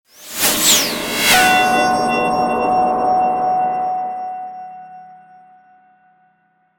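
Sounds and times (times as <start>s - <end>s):
alarm: 0.2s - 5.4s.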